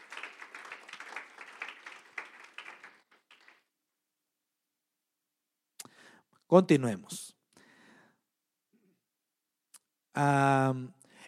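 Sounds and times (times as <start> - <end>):
audience applauding: 0.0 - 3.7
speech: 6.5 - 7.3, 10.2 - 11.0.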